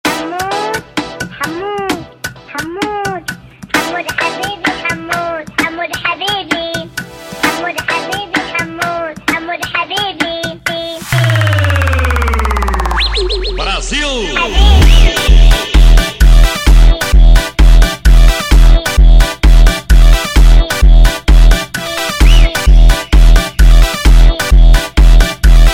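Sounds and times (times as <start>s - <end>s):
funk music: 0.0s - 25.7s.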